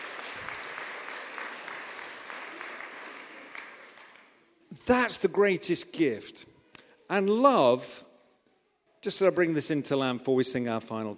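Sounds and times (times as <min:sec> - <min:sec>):
audience applause: 0:00.0 - 0:04.5
speech: 0:04.8 - 0:06.5, 0:07.1 - 0:08.1, 0:09.0 - 0:11.1.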